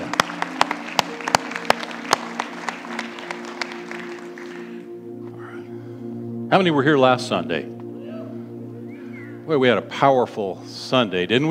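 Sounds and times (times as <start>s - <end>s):
audience applause: 0.0s - 4.9s
low humming drone: 0.0s - 11.4s
speech: 6.5s - 7.7s, 9.5s - 11.4s.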